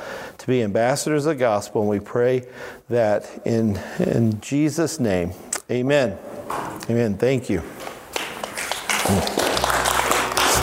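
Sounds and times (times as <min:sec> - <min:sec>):
speech: 0:00.4 - 0:07.8, 0:09.1 - 0:09.4
audience applause: 0:08.1 - 0:10.6.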